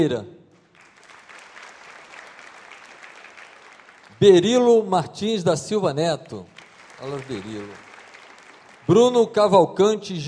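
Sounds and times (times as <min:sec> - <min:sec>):
speech: 0:00.0 - 0:00.4, 0:04.2 - 0:07.9, 0:08.9 - 0:10.2
audience applauding: 0:00.6 - 0:05.0, 0:06.3 - 0:09.6.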